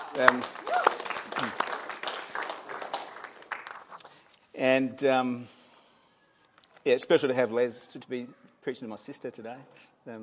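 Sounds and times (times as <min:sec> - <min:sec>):
clapping: 0:00.0 - 0:04.2
speech: 0:00.2 - 0:01.6, 0:04.6 - 0:05.6, 0:06.8 - 0:10.2.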